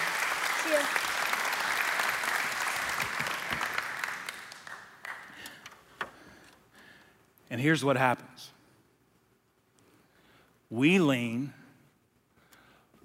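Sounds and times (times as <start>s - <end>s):
crowd applauding: 0.0s - 5.9s
speech: 0.7s - 1.1s, 7.5s - 8.6s, 10.8s - 11.6s.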